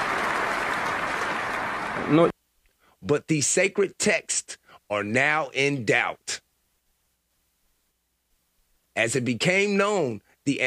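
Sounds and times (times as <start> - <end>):
crowd applauding: 0.0 - 2.3
speech: 2.0 - 2.3, 3.0 - 6.4, 9.0 - 10.6.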